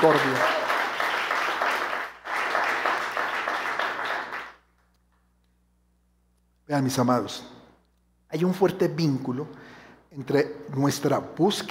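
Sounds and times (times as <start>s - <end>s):
speech: 0.0s - 0.6s, 6.7s - 7.5s, 8.3s - 11.6s
audience applause: 0.0s - 4.6s.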